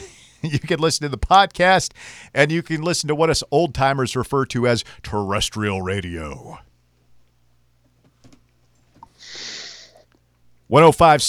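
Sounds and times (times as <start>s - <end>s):
speech: 0.4s - 6.7s, 10.7s - 11.2s
deep breath into microphone: 2.0s - 2.4s.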